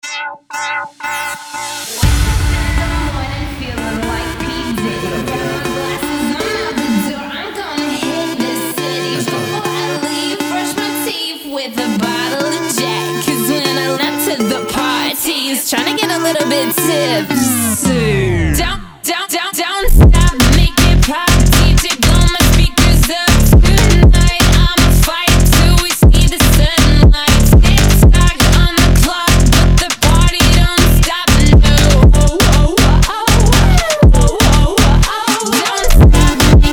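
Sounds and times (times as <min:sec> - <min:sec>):
phonk music: 0:00.0 - 0:36.7.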